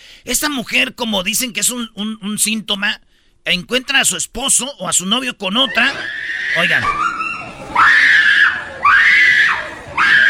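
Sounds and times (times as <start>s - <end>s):
speech: 0.2s - 7.1s
woman screaming in a played video: 5.9s - 10.2s.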